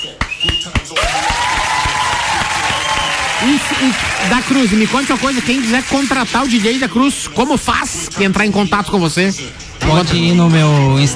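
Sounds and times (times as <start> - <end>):
applause: 0.2 - 6.8
speech: 3.4 - 11.1.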